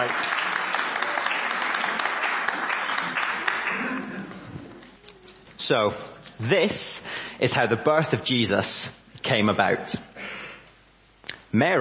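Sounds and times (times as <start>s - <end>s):
speech: 0.0s - 0.3s, 5.7s - 10.0s, 11.6s - 11.7s
crowd applause: 0.0s - 4.9s.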